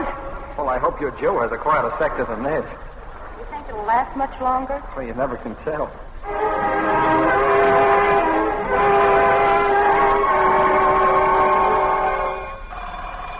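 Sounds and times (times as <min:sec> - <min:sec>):
speech: 0:00.6 - 0:02.9, 0:03.7 - 0:07.8
air raid all-clear siren: 0:06.2 - 0:13.3.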